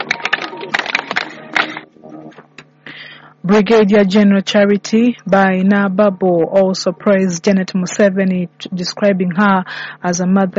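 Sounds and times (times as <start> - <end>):
audience clapping: 0.0 - 1.9
speech: 3.5 - 10.5.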